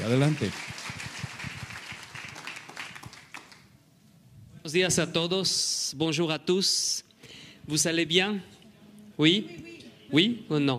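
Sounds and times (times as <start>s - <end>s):
speech: 0.0s - 1.0s, 4.7s - 7.1s, 7.7s - 8.6s, 9.2s - 10.7s
audience applause: 0.0s - 3.7s.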